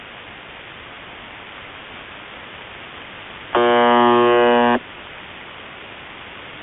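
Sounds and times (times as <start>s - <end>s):
buzzer: 3.5s - 4.8s.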